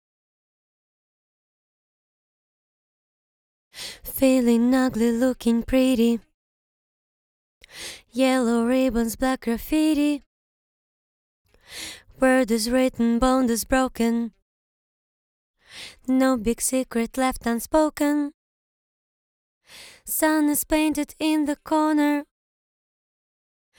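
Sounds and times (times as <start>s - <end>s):
a cappella vocals singing a verse in English: 3.8s - 6.3s, 7.6s - 10.3s, 11.7s - 14.4s, 15.7s - 18.4s, 19.8s - 22.3s.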